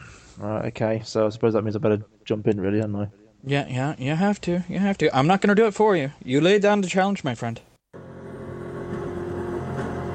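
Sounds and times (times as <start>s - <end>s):
speech: 0.4s - 7.7s
Bentley car engine drone setting off on a racing circuit lap: 8.0s - 10.1s.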